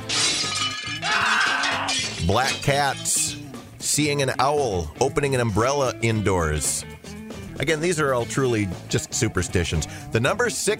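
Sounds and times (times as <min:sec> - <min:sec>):
mirror glass shattering: 0:00.0 - 0:03.5
speech: 0:02.3 - 0:03.2, 0:03.9 - 0:07.0, 0:07.6 - 0:10.7.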